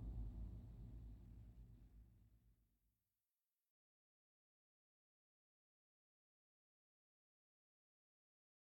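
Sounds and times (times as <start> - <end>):
exit music: 0.0 - 2.0.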